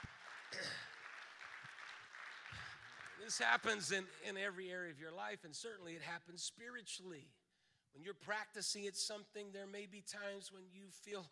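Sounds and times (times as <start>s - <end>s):
speech: 0.0s - 1.0s, 3.2s - 11.2s
audience clapping hands: 0.0s - 4.3s.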